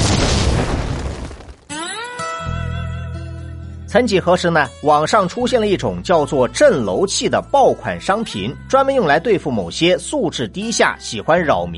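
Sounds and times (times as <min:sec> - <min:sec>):
explosion sound effect: 0:00.0 - 0:01.8
speech: 0:03.9 - 0:11.7.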